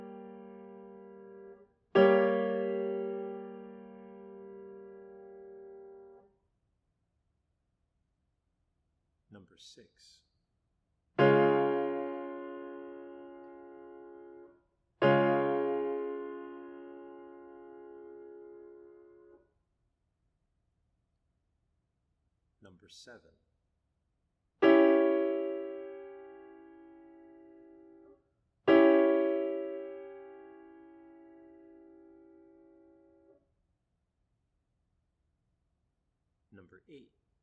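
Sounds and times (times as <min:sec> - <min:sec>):
chords: 0:00.0 - 0:06.2, 0:11.2 - 0:19.4, 0:24.6 - 0:28.1, 0:28.7 - 0:33.3.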